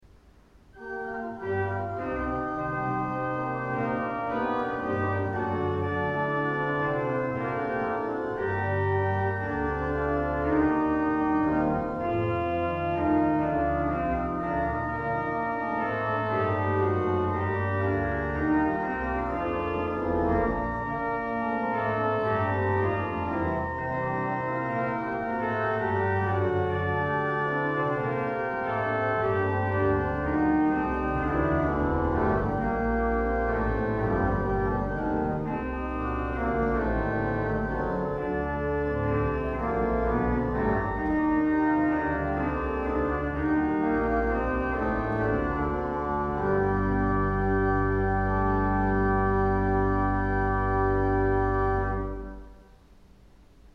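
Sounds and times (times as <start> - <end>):
organ piece: 0.1 - 53.7.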